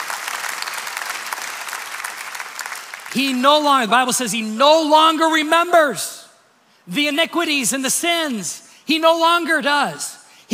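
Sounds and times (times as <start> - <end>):
crowd clapping steadily: 0.0 - 3.4
speech: 3.1 - 6.2, 6.9 - 10.5.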